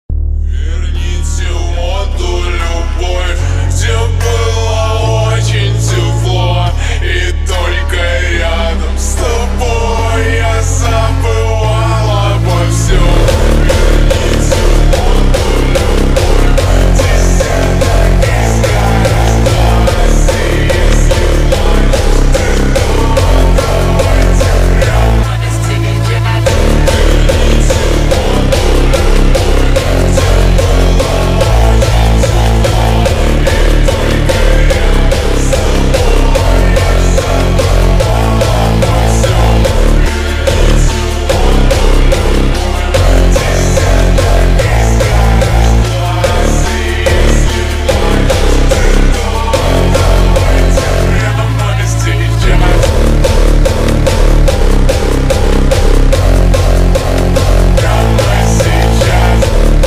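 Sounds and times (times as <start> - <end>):
hardstyle remix: 0.0 - 59.8.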